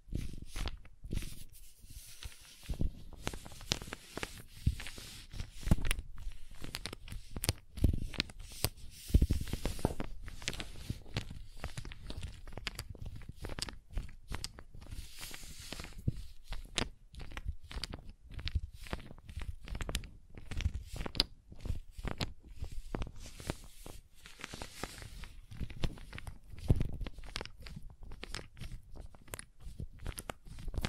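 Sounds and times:
crayons tapping, scraping and carving: 0.0 - 30.8.

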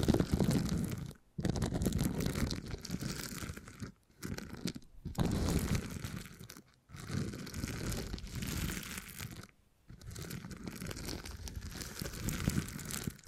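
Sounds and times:
beeswax squeezed and worked, crunching and crinkling: 0.0 - 13.2.

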